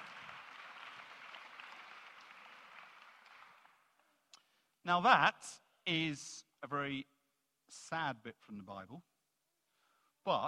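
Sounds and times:
audience applause: 0:00.0 - 0:03.9
speech: 0:04.9 - 0:09.1, 0:10.3 - 0:10.4.

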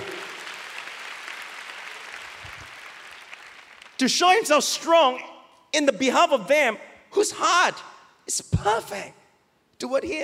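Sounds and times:
crowd applause: 0:00.0 - 0:04.0
speech: 0:04.0 - 0:09.2, 0:09.8 - 0:10.2.

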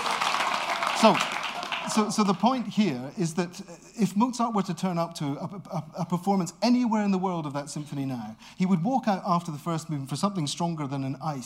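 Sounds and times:
audience applause: 0:00.0 - 0:02.7
speech: 0:01.0 - 0:11.4.

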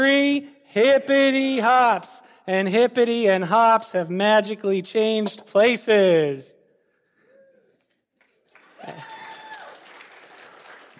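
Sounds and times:
speech: 0:00.0 - 0:06.6
scattered audience clapping: 0:08.2 - 0:10.9.

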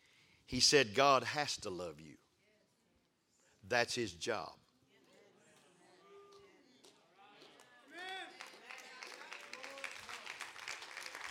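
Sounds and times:
speech: 0:00.5 - 0:02.2, 0:03.7 - 0:04.6
weak audience clapping: 0:06.3 - 0:11.3.

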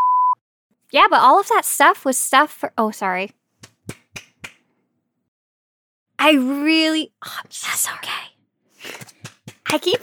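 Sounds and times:
speech: 0:00.9 - 0:03.4, 0:06.3 - 0:09.1, 0:09.7 - 0:10.0
hand claps: 0:03.6 - 0:04.6, 0:08.8 - 0:10.0.

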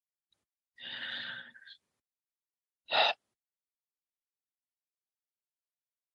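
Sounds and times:
deep breathing in and out during a guided prayer meditation: 0:00.8 - 0:01.8.

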